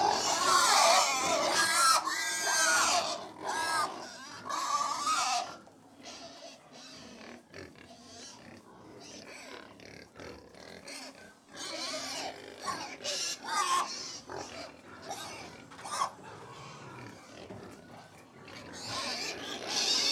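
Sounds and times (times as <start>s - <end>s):
about 100 pigs squealing and grunting while feeding: 0.0s - 20.0s.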